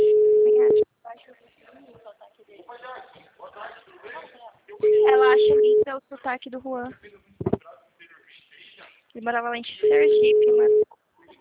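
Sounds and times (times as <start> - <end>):
ringback tone of an outgoing phone call: 0.0 - 0.8, 4.8 - 5.9, 9.8 - 10.8
speech: 5.1 - 7.2, 9.2 - 10.8.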